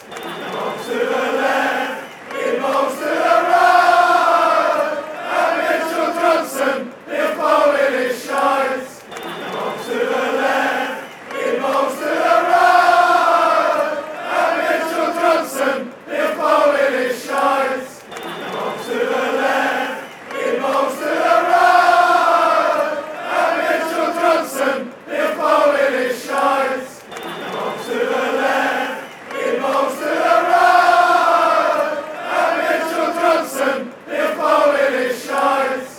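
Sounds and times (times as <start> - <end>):
fans chanting: 0.0 - 35.9.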